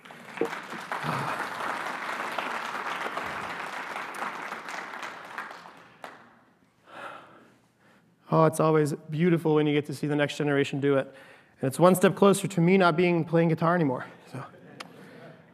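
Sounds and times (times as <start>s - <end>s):
audience applause: 0.0s - 6.3s
speech: 8.4s - 14.6s.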